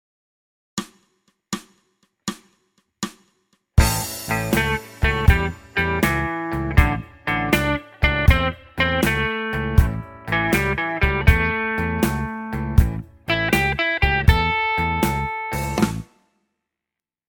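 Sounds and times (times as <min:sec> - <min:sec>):
blues music: 0:03.8 - 0:16.1.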